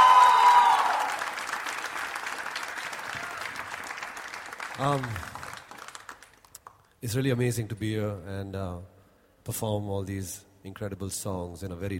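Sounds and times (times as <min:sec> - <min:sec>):
loud audience applause at a live music performance: 0:00.0 - 0:06.6
speech: 0:04.8 - 0:05.3, 0:07.0 - 0:08.9, 0:09.5 - 0:11.9.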